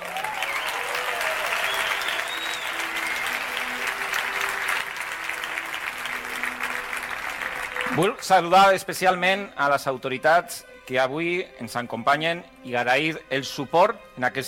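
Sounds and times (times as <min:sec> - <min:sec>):
loud audience applause: 0:00.0 - 0:08.2
speech: 0:08.0 - 0:14.4.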